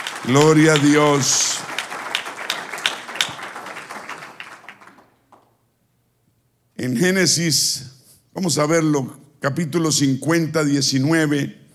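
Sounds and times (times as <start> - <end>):
audience applauding: 0.0 - 5.6
speech: 0.2 - 1.7, 6.8 - 11.6.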